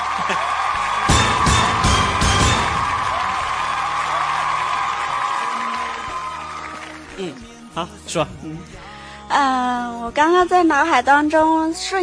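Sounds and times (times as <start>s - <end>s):
audience applause and cheering: 0.0s - 7.7s
speech: 0.3s - 0.5s, 7.2s - 12.0s.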